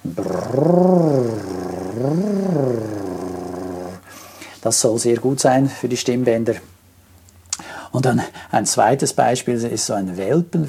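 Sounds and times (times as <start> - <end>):
lip trill imitating a motorboat: 0.0 - 4.0
speech: 0.6 - 1.1, 4.6 - 6.7, 8.0 - 10.6.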